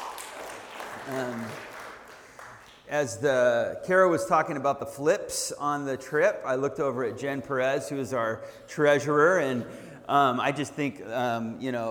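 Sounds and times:
audience applause: 0.0s - 2.8s
speech: 1.1s - 1.7s, 2.9s - 11.8s.

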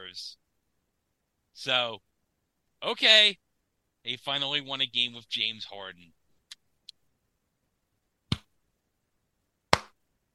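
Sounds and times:
speech: 0.1s - 0.4s, 1.6s - 2.1s, 2.8s - 3.4s, 4.0s - 6.2s
slow clap: 9.7s - 10.0s.

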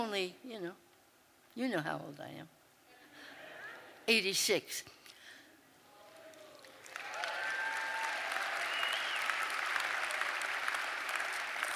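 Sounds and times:
speech: 0.0s - 0.9s, 1.6s - 2.6s, 4.1s - 5.0s
audience clapping: 6.2s - 11.7s.

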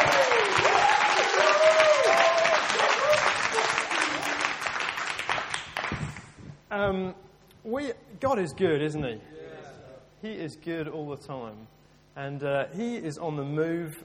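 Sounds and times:
audience applause: 0.0s - 6.4s
speech: 6.8s - 9.3s, 10.2s - 14.0s.

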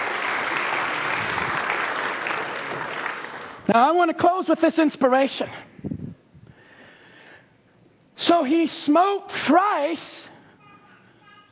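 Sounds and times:
crowd applause: 0.0s - 3.6s
speech: 3.7s - 5.6s, 8.3s - 10.2s.

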